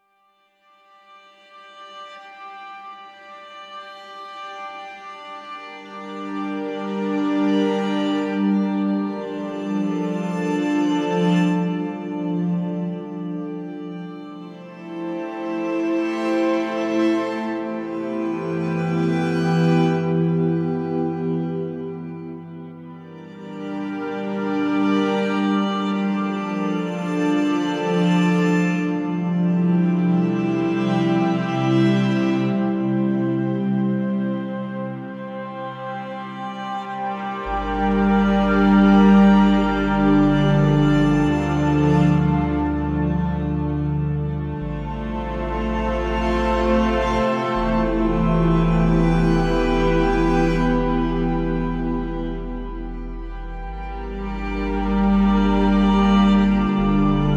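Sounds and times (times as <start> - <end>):
viola playing: 0.9 - 57.3.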